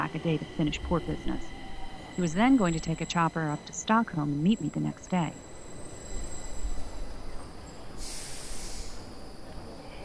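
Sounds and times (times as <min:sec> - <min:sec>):
high-speed train rumbling: 0:00.0 - 0:10.0
speech: 0:00.1 - 0:01.6, 0:02.2 - 0:05.5
hissing air burst: 0:08.0 - 0:09.1.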